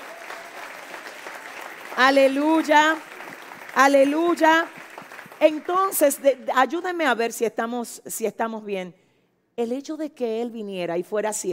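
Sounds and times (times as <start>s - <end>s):
audience applause: 0.0s - 6.2s
speech: 2.0s - 3.1s, 3.8s - 4.8s, 5.4s - 9.0s, 9.6s - 11.5s.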